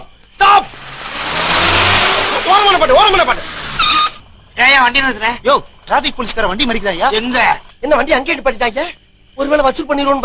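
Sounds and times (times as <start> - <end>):
approaching vehicle engine and road noise: 0.6 - 7.1
speech: 2.8 - 3.5, 4.8 - 10.2.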